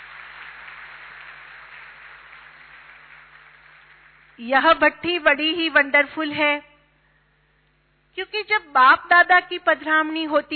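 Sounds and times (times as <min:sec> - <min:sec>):
audience applause: 0:00.0 - 0:04.4
speech: 0:04.4 - 0:06.7, 0:08.2 - 0:10.5.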